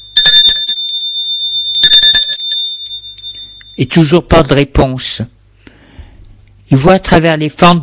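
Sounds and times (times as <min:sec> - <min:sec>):
apartment doorbell ringing: 0:00.0 - 0:04.0
speech: 0:03.8 - 0:05.4, 0:06.7 - 0:07.8.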